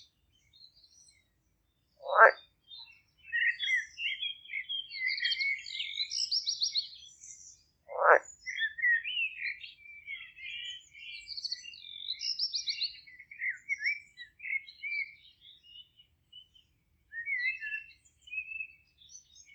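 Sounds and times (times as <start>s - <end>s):
birds singing in a Polish village garden: 0.0s - 19.5s
frogs croaking in a Polish village: 2.0s - 2.4s, 7.9s - 8.4s.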